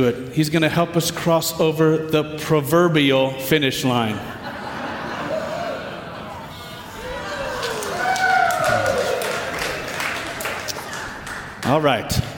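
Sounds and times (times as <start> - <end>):
speech: 0.0 - 4.4, 11.7 - 12.3
laughter: 3.8 - 11.6
applause: 7.6 - 12.3.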